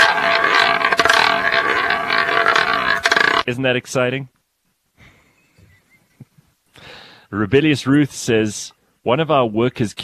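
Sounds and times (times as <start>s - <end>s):
roulette wheel spinning: 0.0s - 3.5s
speech: 3.5s - 4.3s, 7.3s - 10.0s.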